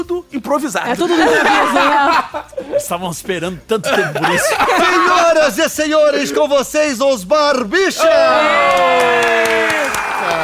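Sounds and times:
speech: 0.0 - 10.4
laughter: 1.0 - 3.0, 3.7 - 5.5
people cheering: 7.9 - 10.4
small group applauding: 8.4 - 10.4.

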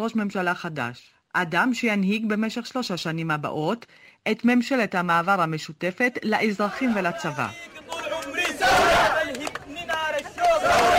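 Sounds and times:
speech: 0.0 - 7.7
celebrating crowd singing and cheering in the streets of Khartoum: 6.7 - 10.9.

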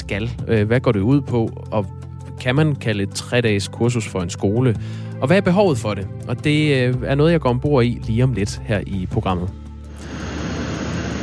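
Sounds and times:
speech: 0.1 - 10.2
Nancy Pelosi's official plane rolling onto the runway in Taipei: 10.0 - 11.2.

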